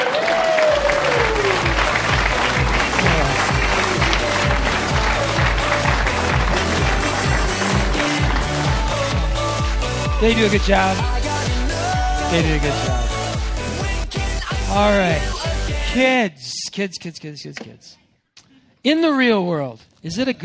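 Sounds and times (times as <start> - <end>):
theatre audience applause and cheering: 0.0 - 12.9
cast singing: 0.6 - 16.1
loud rhythmic music with a heavy bass beat: 0.9 - 15.8
speech: 10.2 - 11.2, 12.3 - 13.0, 14.8 - 18.0, 18.8 - 20.4.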